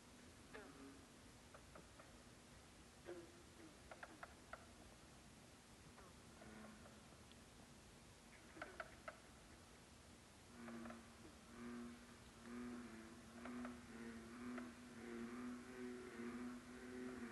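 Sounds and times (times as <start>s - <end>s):
steady hiss: 0.0s - 17.3s
frog chorus croaking: 0.4s - 2.3s, 3.0s - 4.9s, 5.9s - 7.3s, 8.3s - 9.5s, 10.5s - 17.3s.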